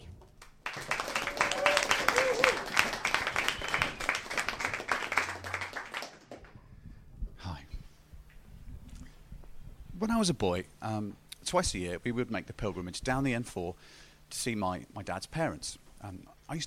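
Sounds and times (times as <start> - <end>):
crowd applauding: 0.4 - 6.6
speech: 10.2 - 16.6.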